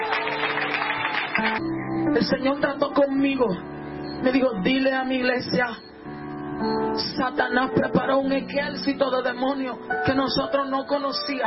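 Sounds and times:
audience applauding: 0:00.0 - 0:01.6
speech: 0:01.4 - 0:05.9, 0:06.6 - 0:11.4.

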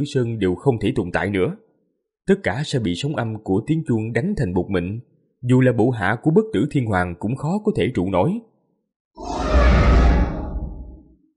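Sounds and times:
speech: 0:00.0 - 0:01.6, 0:02.3 - 0:08.5
undead corpses roaring: 0:09.2 - 0:11.1.

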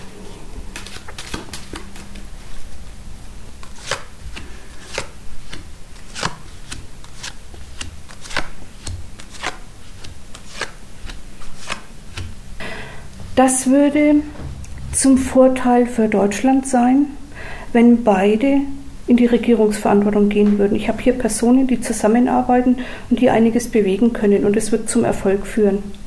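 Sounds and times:
low steady hum: 0:00.0 - 0:26.0
playing cards being shuffled: 0:00.2 - 0:02.8, 0:03.6 - 0:12.3
speech: 0:13.4 - 0:14.4, 0:15.0 - 0:26.0.

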